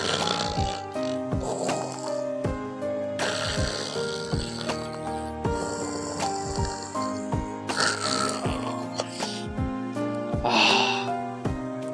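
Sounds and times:
voice imitating a piglet snoring: 0.0 - 2.3, 3.2 - 9.5
steady musical background: 0.0 - 11.9.

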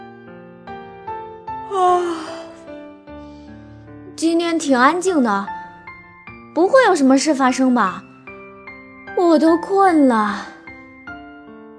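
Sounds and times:
speech: 1.7 - 2.4, 4.2 - 5.6, 6.6 - 8.1, 9.2 - 10.5
yawn: 1.7 - 2.6.

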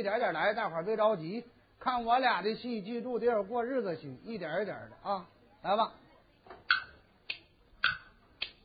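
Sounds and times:
speech: 0.0 - 6.0
kuaiban bamboo clappers: 6.6 - 8.6.

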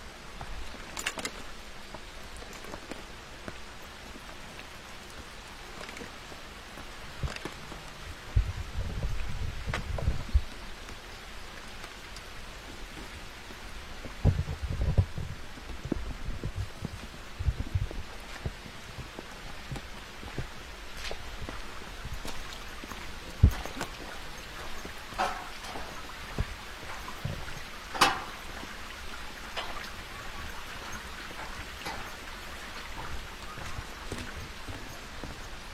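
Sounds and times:
footsteps and rustles on a forest trail: 0.0 - 35.7
rain on a forest trail: 0.0 - 35.7
sharp drips or taps: 0.1 - 8.2, 10.4 - 14.4, 15.6 - 35.7.

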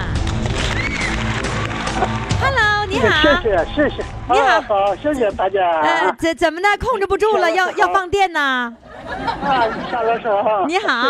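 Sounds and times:
audience applause: 0.4 - 3.2
speech: 3.0 - 11.0
laughter: 8.8 - 11.0.

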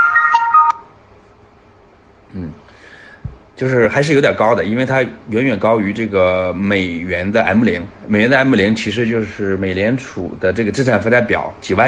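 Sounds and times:
short electronic phone ringtone: 0.0 - 0.8
speech: 3.6 - 11.8.

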